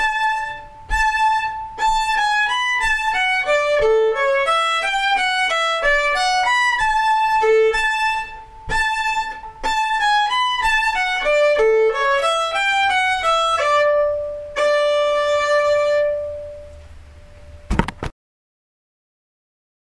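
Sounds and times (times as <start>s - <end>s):
slow fiddle playing: 0.0s - 17.7s.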